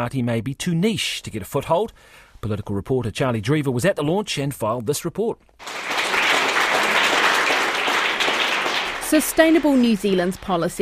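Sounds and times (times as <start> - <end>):
speech: 0.0 - 6.0, 9.1 - 10.7
audience applause at a party launch: 5.6 - 10.7.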